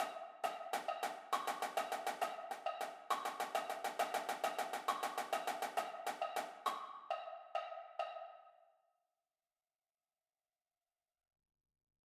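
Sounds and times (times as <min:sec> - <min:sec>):
percussion battery triplet timing exercise: 0:00.0 - 0:08.4.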